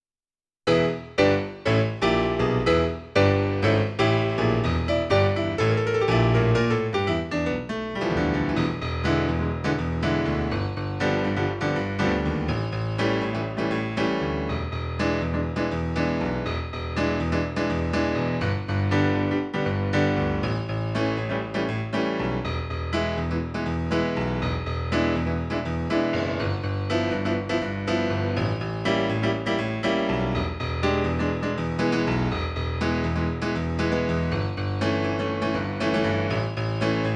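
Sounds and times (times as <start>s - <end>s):
musical accompaniment: 0.7s - 37.1s.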